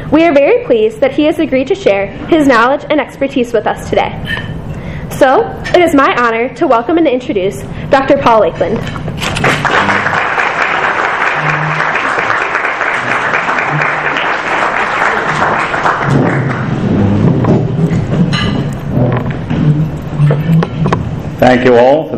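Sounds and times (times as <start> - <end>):
speech: 0.1 - 4.5, 5.1 - 9.9, 21.4 - 22.1
audience applause: 9.3 - 16.8
low murmurs: 9.4 - 21.4.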